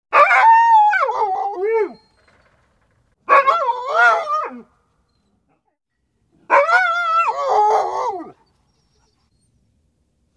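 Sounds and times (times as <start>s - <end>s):
dog howling: 0.2s - 2.1s, 3.3s - 4.7s, 6.5s - 8.4s.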